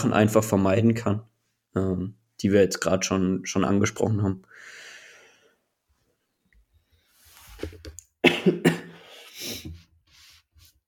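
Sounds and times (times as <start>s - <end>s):
speech: 0.0s - 4.8s
person coughing after choking on something: 8.2s - 9.8s.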